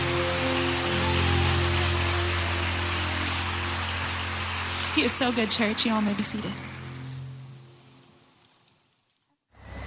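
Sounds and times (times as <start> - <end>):
audience clapping hands in praise: 0.0 - 7.5
speech: 5.0 - 6.8.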